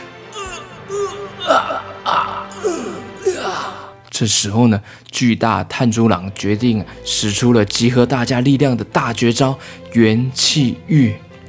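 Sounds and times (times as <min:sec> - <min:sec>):
voiced painful groaning cries acted out as if in agony: 0:00.0 - 0:04.0
speech: 0:04.2 - 0:11.2.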